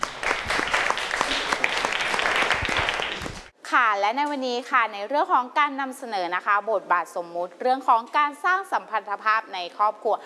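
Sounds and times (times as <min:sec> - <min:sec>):
students clapping: 0:00.0 - 0:03.5
speech: 0:03.8 - 0:10.2.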